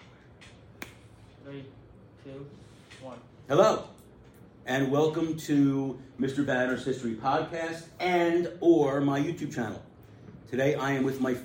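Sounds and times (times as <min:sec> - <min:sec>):
finger snap in a classroom: 0:00.4 - 0:01.0
speech: 0:01.5 - 0:04.0, 0:04.7 - 0:09.9, 0:10.5 - 0:11.4.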